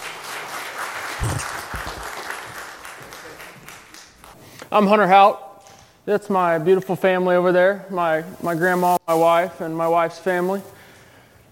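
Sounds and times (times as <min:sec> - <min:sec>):
audience applause welcoming a guest speaker: 0:00.0 - 0:04.3
speech: 0:01.2 - 0:01.6, 0:04.7 - 0:05.4, 0:06.1 - 0:10.8.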